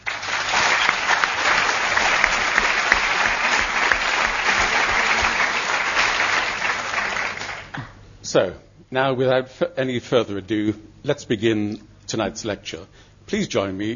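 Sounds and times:
lecture audience applause: 0.0s - 8.0s
speech: 8.4s - 13.9s.

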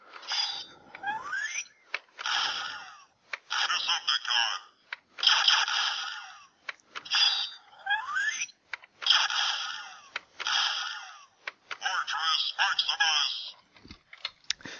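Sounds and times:
electronic whirring effects: 0.2s - 4.2s, 5.2s - 8.4s, 9.0s - 11.3s
talking transforming robot toy synthesized voice: 1.0s - 1.7s, 2.5s - 4.7s, 5.3s - 10.2s, 10.9s - 13.6s.

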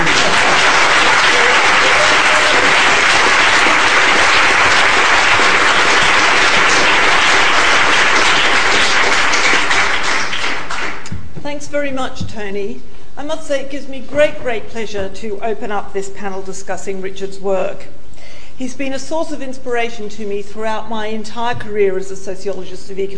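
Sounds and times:
audience applause: 0.0s - 11.1s
speech: 11.7s - 18.0s, 18.6s - 23.1s.

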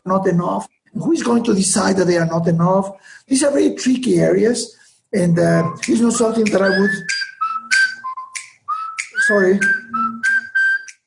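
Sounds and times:
speech: 0.0s - 7.2s, 9.3s - 9.9s
mobile phone ringtone melody: 5.5s - 11.0s.

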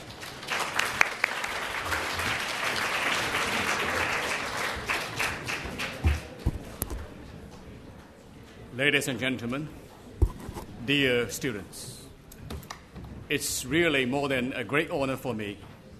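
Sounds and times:
applause at the LSE SU China Development Forum: 0.0s - 6.4s
speech: 8.8s - 9.9s, 10.9s - 12.0s, 13.3s - 15.7s.

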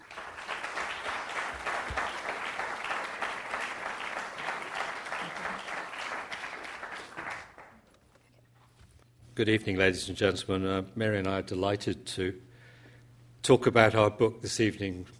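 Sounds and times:
audience applause welcoming two professors to an evening lecture: 0.0s - 7.8s
speech: 9.4s - 12.5s, 13.5s - 15.1s.

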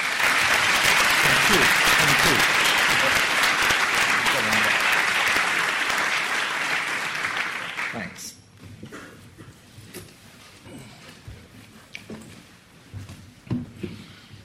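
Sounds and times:
lecture audience applause welcoming the speaker: 0.0s - 8.2s.

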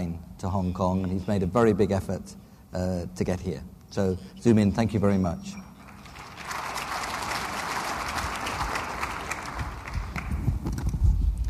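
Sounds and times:
speech: 0.4s - 5.7s
audience applause: 5.8s - 10.6s.

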